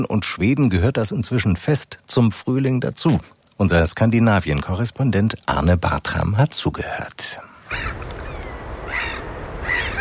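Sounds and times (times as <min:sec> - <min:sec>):
speech: 0:00.0 - 0:08.0
wind: 0:00.0 - 0:09.9
seabirds calling: 0:07.6 - 0:09.9
steady low roar of surf: 0:07.9 - 0:09.9.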